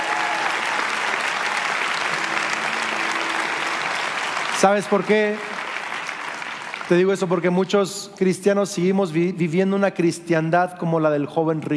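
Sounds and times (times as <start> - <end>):
church audience applauding: 0.0 - 7.8
speech: 4.6 - 5.6, 6.9 - 11.7.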